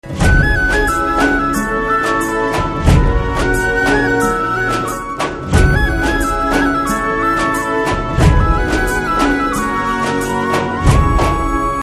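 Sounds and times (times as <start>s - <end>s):
Telugu background music ringtone: 0.2s - 11.8s.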